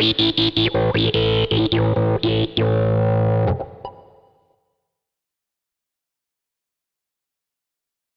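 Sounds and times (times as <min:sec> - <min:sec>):
tone demo: 0:00.0 - 0:04.3.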